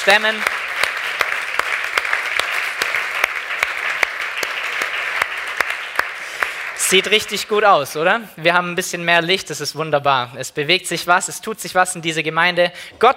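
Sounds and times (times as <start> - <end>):
speech: 0.0 - 0.6, 6.9 - 13.1
audience applause: 0.0 - 7.6.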